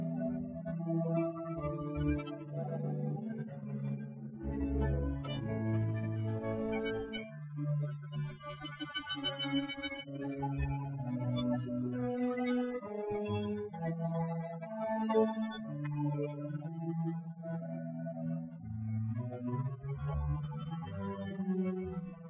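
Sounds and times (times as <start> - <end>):
extracted cello: 0.0 - 22.2.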